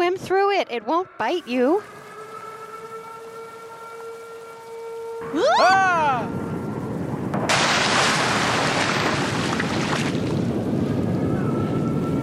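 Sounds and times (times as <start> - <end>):
speech: 0.2 - 2.0, 5.2 - 6.4
huge gust of wind over water: 5.5 - 12.2.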